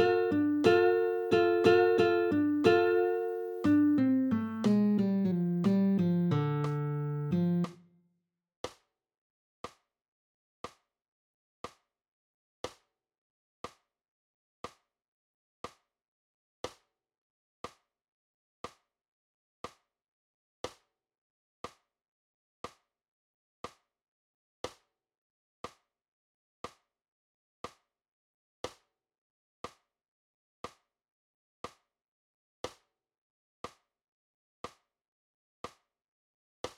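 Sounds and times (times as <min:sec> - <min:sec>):
nylon-string guitar: 0:00.0 - 0:07.8.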